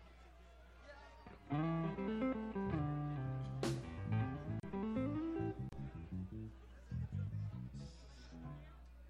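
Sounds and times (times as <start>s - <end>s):
instrument tuning: 1.5s - 8.6s.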